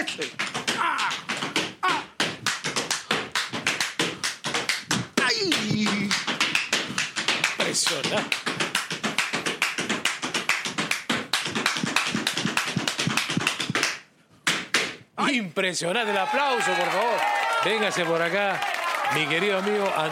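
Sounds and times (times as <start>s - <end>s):
tap dancing with foot stomping: 0.0s - 15.0s
speech: 0.1s - 0.5s, 7.9s - 8.4s, 15.3s - 20.1s.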